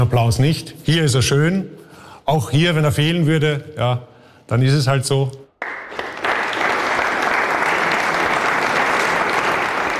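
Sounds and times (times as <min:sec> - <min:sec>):
speech: 0:00.0 - 0:05.4
audience applause after a performance: 0:05.6 - 0:09.9.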